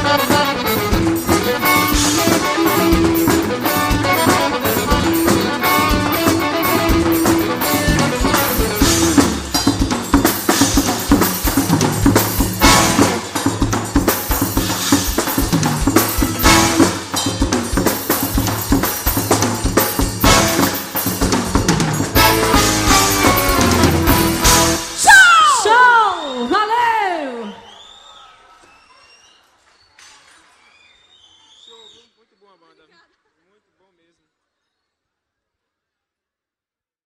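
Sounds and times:
live instrumental music ending a show: 0.0s - 27.2s.

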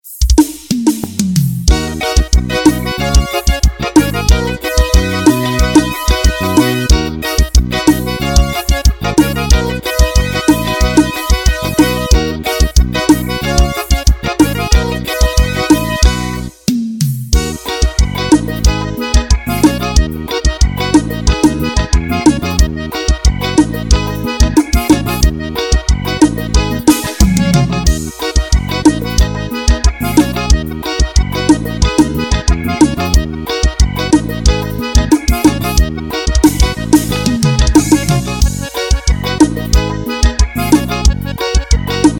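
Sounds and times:
keyboard forró music: 0.0s - 42.1s.

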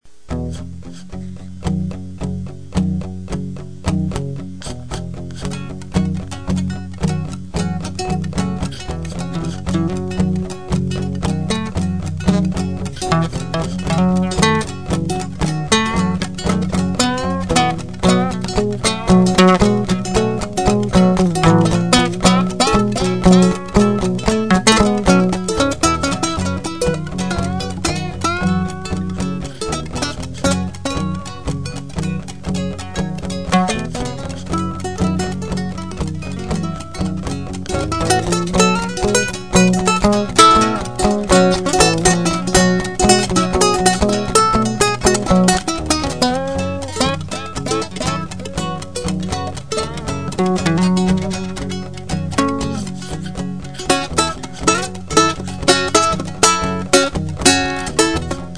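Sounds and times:
blues jam: 0.1s - 58.5s.

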